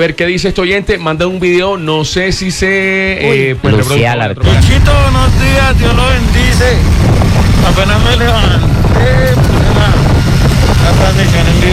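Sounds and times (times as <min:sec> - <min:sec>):
speech: 0:00.0 - 0:06.9, 0:07.5 - 0:11.7
speech: 0:00.0 - 0:10.0, 0:10.9 - 0:11.7
heavy wind buffeting the microphone: 0:04.4 - 0:11.7
motorcycle riding engine roar: 0:04.4 - 0:11.7.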